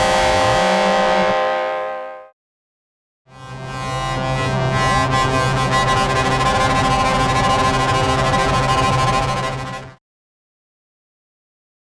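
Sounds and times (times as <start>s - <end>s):
electric guitar: 0.0s - 2.2s, 3.5s - 10.0s.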